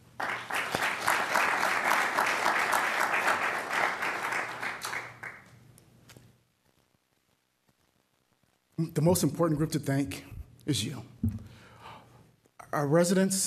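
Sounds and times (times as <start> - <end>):
audience applause: 0.0 - 5.6
speech: 8.8 - 11.5, 12.7 - 13.4.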